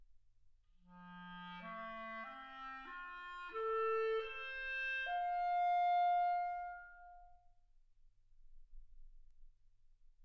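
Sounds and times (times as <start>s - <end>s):
clarinet: 0.9s - 7.4s.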